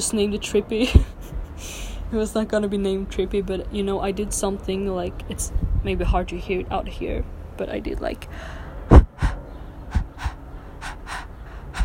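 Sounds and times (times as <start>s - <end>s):
speech: 0.0s - 8.6s
breathing processed through voice plugins to mimic a heartbeat: 8.3s - 11.8s.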